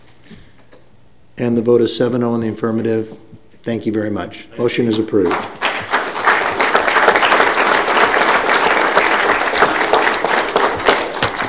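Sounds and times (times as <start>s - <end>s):
speech: 1.4s - 5.6s
audience applause in council chamber: 5.2s - 11.4s.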